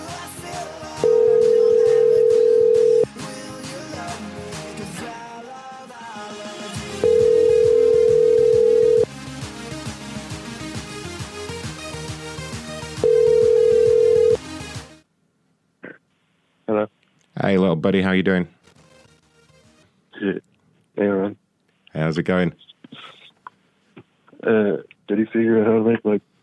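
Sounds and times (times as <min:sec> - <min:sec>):
music: 0:00.0 - 0:15.1, 0:17.6 - 0:20.0
ringback tone on an outgoing phone call: 0:01.0 - 0:03.1, 0:07.0 - 0:09.1, 0:13.0 - 0:14.4
speech: 0:17.8 - 0:18.6, 0:22.1 - 0:22.6, 0:24.5 - 0:26.0.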